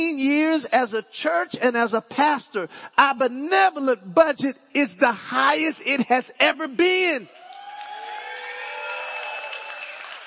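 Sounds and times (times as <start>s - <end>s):
speech: 0.0s - 7.4s
audience applauding: 7.3s - 10.2s.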